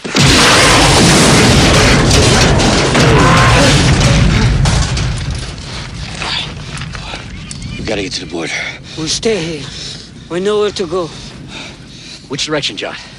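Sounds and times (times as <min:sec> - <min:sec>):
dense crackling debris: 0:00.0 - 0:13.1
stricken helicopter gunship exploding in a Rambo film: 0:00.1 - 0:06.0
speech: 0:07.9 - 0:11.2, 0:12.3 - 0:13.1.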